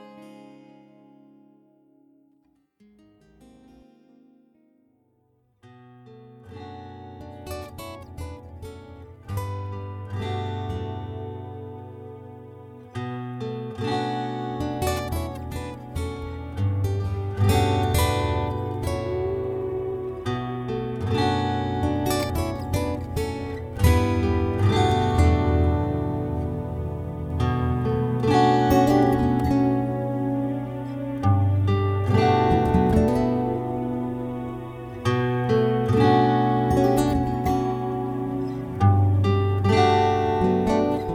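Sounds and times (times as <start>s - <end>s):
guitar: 0.0s - 41.1s.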